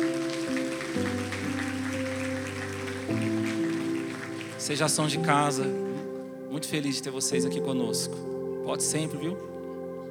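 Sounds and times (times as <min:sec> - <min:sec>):
audience applause: 0:00.0 - 0:05.7
sustained keyboard chords: 0:00.0 - 0:10.0
speech: 0:04.7 - 0:05.8, 0:06.6 - 0:09.6.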